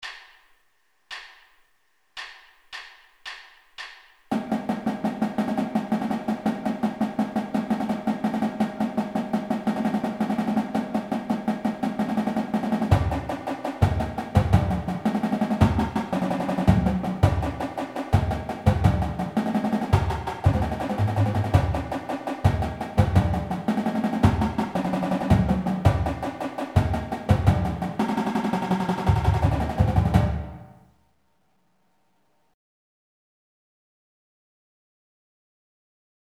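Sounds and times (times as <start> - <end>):
trippy slow marching drum music warm-ups: 2.2 - 30.8.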